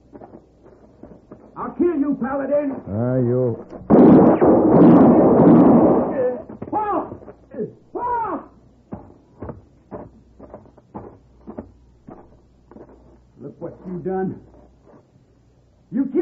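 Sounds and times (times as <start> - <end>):
speech: 2.0 - 5.2
thuds: 3.7 - 7.4, 8.9 - 10.1
gunshot in a Western radio drama: 3.8 - 7.1.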